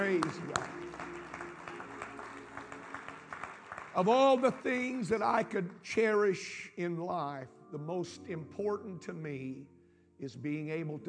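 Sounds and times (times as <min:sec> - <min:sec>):
speech: 0:00.0 - 0:00.8, 0:04.0 - 0:11.0
audience clapping hands: 0:00.0 - 0:05.4.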